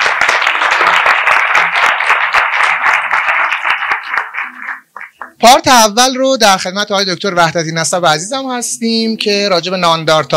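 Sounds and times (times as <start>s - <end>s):
audience applause: 0.0s - 5.4s
speech: 5.4s - 10.3s.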